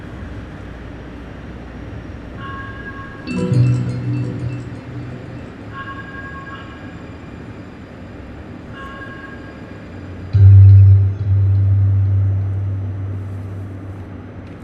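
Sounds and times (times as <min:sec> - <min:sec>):
deep droning tone: 0:03.3 - 0:06.0, 0:10.4 - 0:14.4
plucked strings of a stainless steel wave sculpture chiming: 0:03.3 - 0:06.0, 0:10.4 - 0:14.0
low hum: 0:03.3 - 0:06.2, 0:10.4 - 0:14.6.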